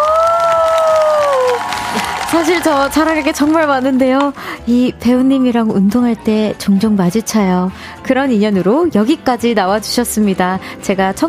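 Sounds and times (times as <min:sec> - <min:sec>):
applause and cheering, standing ovation: 0:00.0 - 0:04.6
speech: 0:02.3 - 0:11.2.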